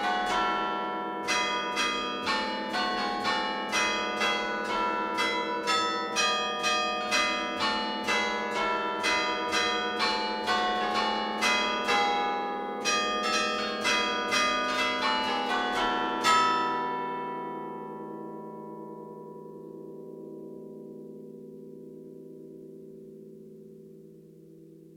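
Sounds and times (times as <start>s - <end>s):
church bells of San Quirico in Genoa, Liguria: 0.0s - 22.5s.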